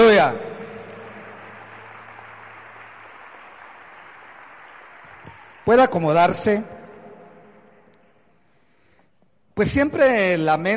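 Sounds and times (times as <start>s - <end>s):
audience applauding: 0.0s - 6.6s
speech: 0.2s - 0.5s, 5.7s - 6.8s, 9.6s - 10.7s.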